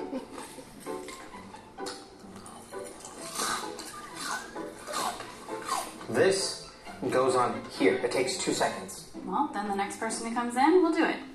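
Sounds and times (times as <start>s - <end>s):
loud chewing: 0.4s - 6.2s
speech: 6.1s - 11.3s.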